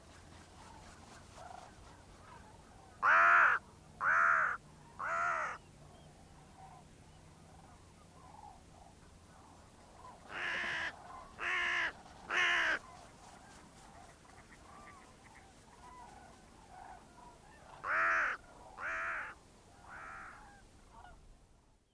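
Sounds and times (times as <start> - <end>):
faint bird calls: 0.0 - 21.9
faint hiss: 0.0 - 21.9
bird harsh caws: 3.0 - 5.6, 10.3 - 12.8, 17.8 - 20.6.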